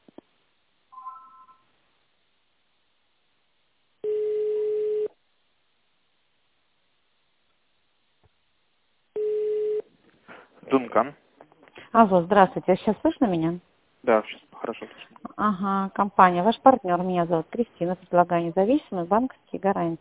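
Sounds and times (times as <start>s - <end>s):
telephone ringback tone while on hold: 1.0s - 1.6s, 4.0s - 5.1s, 9.2s - 9.8s
speech: 10.8s - 11.2s, 11.9s - 19.9s.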